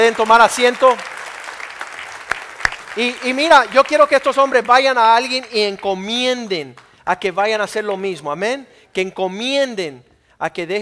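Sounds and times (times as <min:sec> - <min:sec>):
audience applauding: 0:00.0 - 0:05.8
speech: 0:00.1 - 0:01.2, 0:03.0 - 0:10.8.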